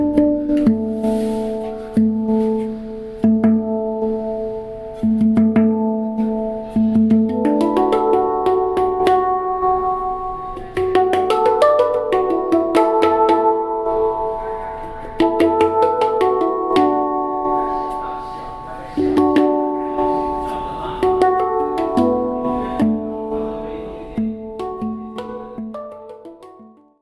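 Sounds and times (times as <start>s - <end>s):
9-note handpan playing: 0.0s - 26.9s.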